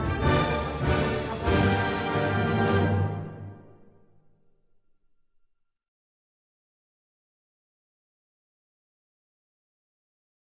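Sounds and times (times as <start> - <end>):
instrumental national anthem: 0.0 - 4.4.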